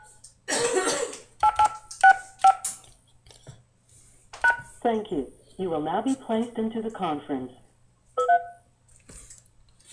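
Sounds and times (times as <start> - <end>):
person coughing: 0.5 - 1.3
telephone keypad tones entering conference ID: 1.4 - 2.7, 8.2 - 8.5
speech: 4.9 - 7.6.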